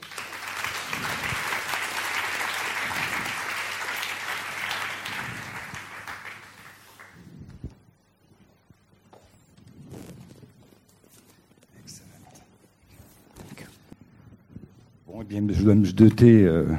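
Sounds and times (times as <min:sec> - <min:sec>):
audience applause: 0:00.0 - 0:07.3
speech: 0:15.3 - 0:16.7.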